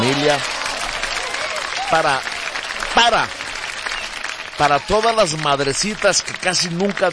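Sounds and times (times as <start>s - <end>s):
audience applause for resting parents and mothers at a gathering: 0.0s - 7.1s
loud voices calling out: 0.0s - 7.1s
speech: 0.2s - 0.7s, 1.9s - 2.3s, 2.9s - 3.4s, 4.6s - 7.1s.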